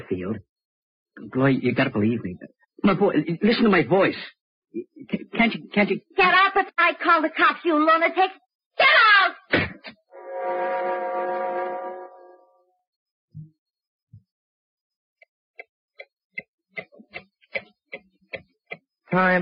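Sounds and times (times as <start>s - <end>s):
speech: 0.0s - 0.5s, 1.2s - 10.9s, 19.1s - 19.3s
clock ticking: 15.2s - 19.3s.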